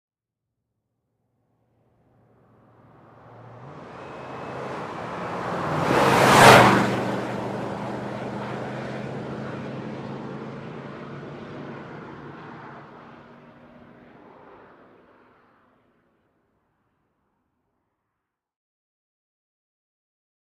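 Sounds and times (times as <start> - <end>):
Ford Expedition driving very fast: 1.8 - 15.4.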